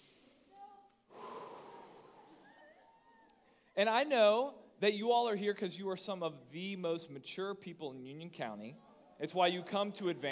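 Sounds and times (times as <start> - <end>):
audience at an evening talk taking a deep breath together: 1.1 - 2.5
speech: 3.8 - 10.3.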